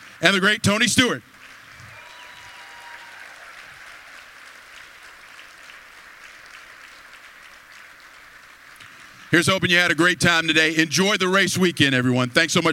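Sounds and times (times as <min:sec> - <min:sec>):
audience applause: 0:00.0 - 0:10.2
speech: 0:00.2 - 0:01.4, 0:09.3 - 0:12.7.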